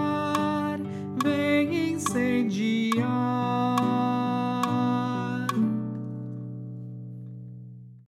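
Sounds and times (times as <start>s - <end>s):
tenor voice singing: 0.0s - 5.7s.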